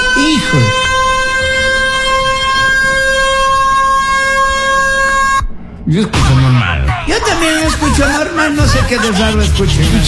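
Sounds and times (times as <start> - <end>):
alarm siren: 0.0 - 5.6
speech: 0.5 - 0.8, 5.9 - 10.0
laughter: 6.2 - 10.0.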